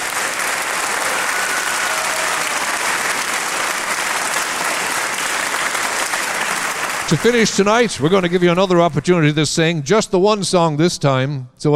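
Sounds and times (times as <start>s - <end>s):
large audience applause: 0.0s - 8.9s
speech: 7.1s - 11.7s.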